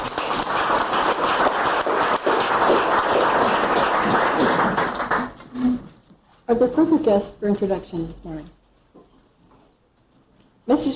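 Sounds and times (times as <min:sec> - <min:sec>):
audience applause: 0:00.0 - 0:05.6
speech: 0:06.6 - 0:08.6, 0:10.7 - 0:10.9.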